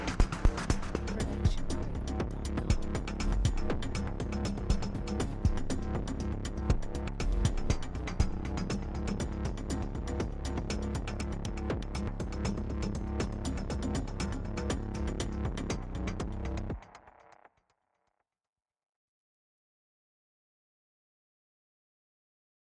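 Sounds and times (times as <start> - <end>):
Moog synth bass groove: 0.0 - 16.8.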